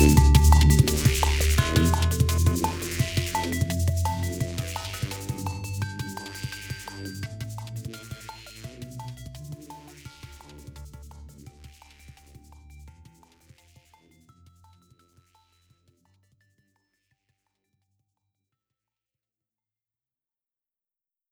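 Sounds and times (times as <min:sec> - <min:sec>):
digital warp effect: 0:00.0 - 0:07.2.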